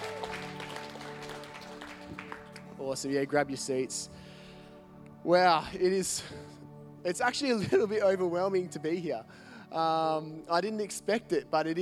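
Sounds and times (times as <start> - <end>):
audience applauding: 0.0 - 3.0
speech: 2.8 - 4.2, 5.2 - 11.7.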